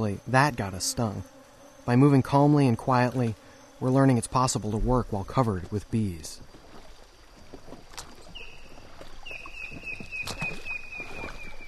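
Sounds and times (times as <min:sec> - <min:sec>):
speech: 0:00.0 - 0:06.5
paddling rafts and kayaks on river: 0:00.0 - 0:11.6.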